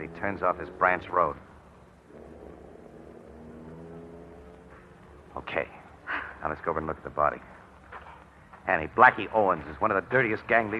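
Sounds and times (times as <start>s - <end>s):
speech: 0.0s - 1.5s, 5.4s - 5.8s, 6.4s - 7.5s, 8.7s - 10.7s
car driving away: 0.0s - 6.4s.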